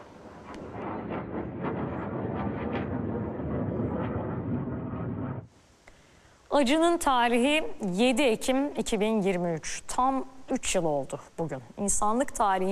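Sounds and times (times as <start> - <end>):
low-flying warplanes roaring over Mawasi in Gaza: 0.0 - 5.5
heat flares crackling: 0.0 - 5.6
speech: 6.6 - 12.7.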